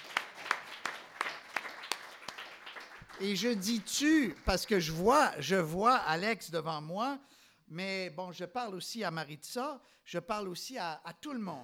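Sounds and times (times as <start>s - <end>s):
applause: 0.0s - 5.2s
speech: 3.2s - 11.6s.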